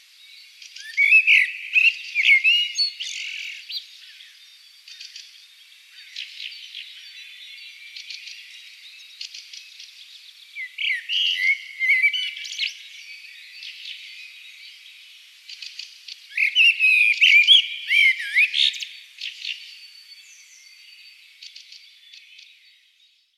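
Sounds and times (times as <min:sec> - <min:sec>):
common blackbird singing: 0:00.0 - 0:23.3.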